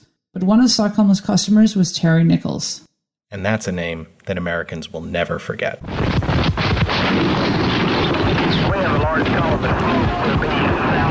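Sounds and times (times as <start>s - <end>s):
speech: 0.4s - 6.6s, 8.3s - 11.0s
building explosion in news recording: 5.8s - 11.0s.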